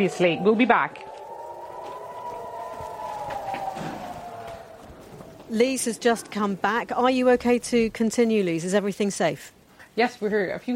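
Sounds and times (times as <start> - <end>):
speech: 0.0 - 1.1, 5.5 - 10.7
air raid siren wailing: 0.0 - 7.4
low noise: 0.0 - 10.7.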